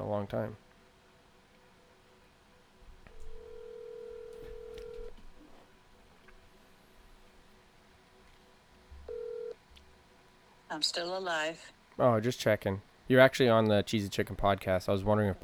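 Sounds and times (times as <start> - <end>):
speech: 0.2 - 0.6, 10.8 - 15.4
telephone dialing tones: 3.2 - 5.2, 9.1 - 9.6.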